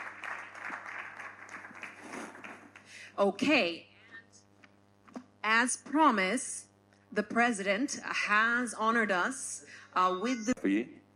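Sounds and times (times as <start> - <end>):
audience applause: 0.0 - 2.9
speech: 3.2 - 3.9, 5.4 - 11.0.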